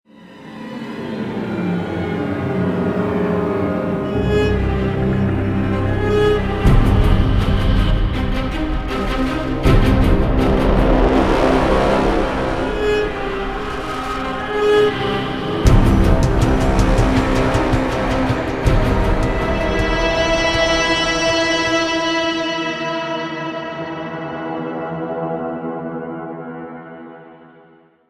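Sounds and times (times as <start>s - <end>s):
ambient violin: 0.0s - 27.1s.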